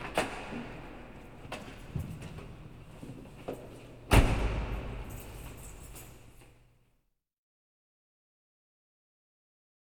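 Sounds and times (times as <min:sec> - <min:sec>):
automobile arriving in parking garage: 0:00.0 - 0:06.6.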